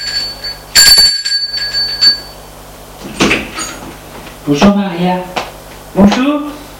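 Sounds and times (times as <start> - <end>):
doorbell at a flat ringing with a bright metallic chime: 0.0 - 2.4
speech: 4.5 - 5.4, 6.0 - 6.6.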